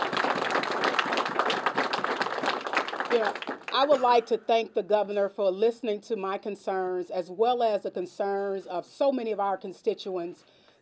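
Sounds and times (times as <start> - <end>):
audience applause: 0.0 - 3.8
speech: 3.1 - 10.8.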